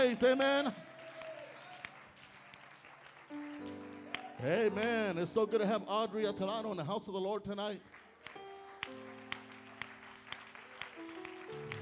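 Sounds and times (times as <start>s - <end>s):
speech: 0.0s - 0.9s, 4.4s - 8.0s
hand claps of praise at a church service: 0.8s - 4.5s, 7.9s - 11.8s.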